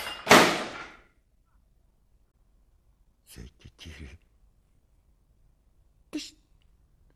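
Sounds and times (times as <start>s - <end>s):
tray dropped on the floor: 0.0s - 1.1s.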